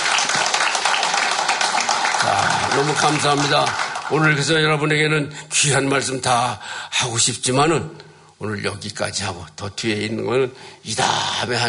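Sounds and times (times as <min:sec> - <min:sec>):
audience applauding: 0:00.0 - 0:04.9
speech: 0:02.8 - 0:11.6.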